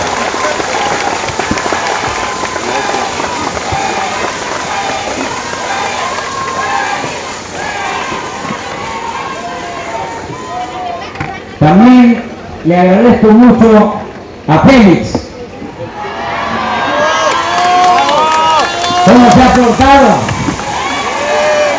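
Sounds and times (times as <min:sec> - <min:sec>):
loud large crowd applause: 0:00.0 - 0:11.2, 0:16.0 - 0:21.7
speech: 0:11.7 - 0:15.2.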